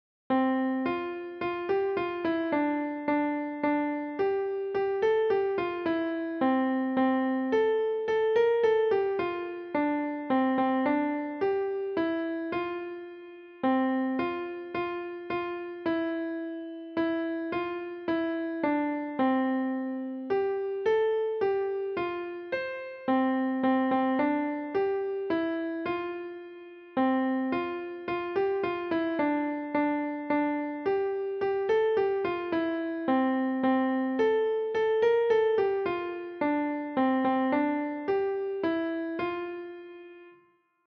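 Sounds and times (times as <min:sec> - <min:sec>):
piano Christmas carol: 0:00.3 - 0:40.6.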